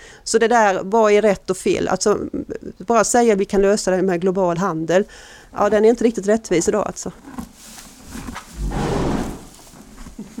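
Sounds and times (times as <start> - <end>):
speech: 0.3 - 7.5
contented horse snorting: 8.1 - 9.8.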